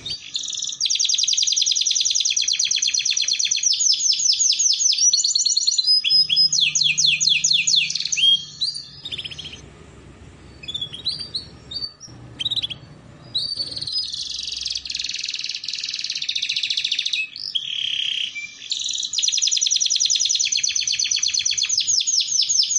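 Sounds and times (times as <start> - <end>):
canary singing: 0.0 - 22.7
low hum: 6.3 - 14.0.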